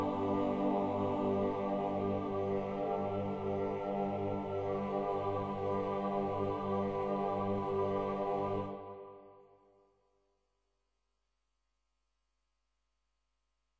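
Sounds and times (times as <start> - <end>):
choir singing: 0.0 - 9.3.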